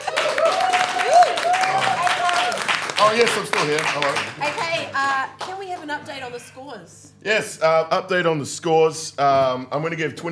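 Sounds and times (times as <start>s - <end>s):
audience round of applause: 0.0s - 5.6s
speech: 3.0s - 10.3s.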